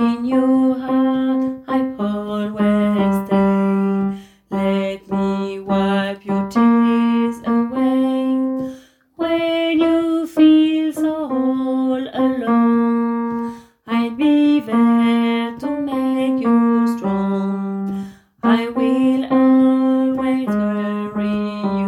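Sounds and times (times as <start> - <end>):
tenorette playing a refrain: 0.0 - 21.8.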